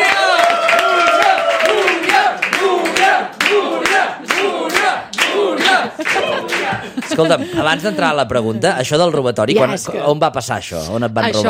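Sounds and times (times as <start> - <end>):
excited cheers and whoops: 0.0 - 2.3
audience applause: 0.0 - 7.8
laughter: 5.4 - 9.0
speech: 7.2 - 11.4.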